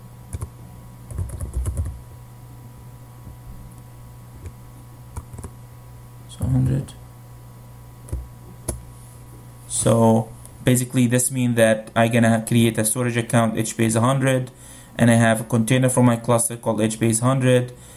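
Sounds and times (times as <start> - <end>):
computer keyboard typing of a storage account name: 0.3 - 0.5, 1.1 - 2.0, 5.2 - 5.5
speech: 6.4 - 7.0, 9.8 - 17.9.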